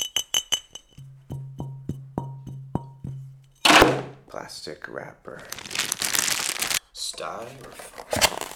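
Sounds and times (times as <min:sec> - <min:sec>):
glass bottle being handled: 0:00.0 - 0:04.2
speech: 0:04.3 - 0:06.0, 0:07.0 - 0:08.4.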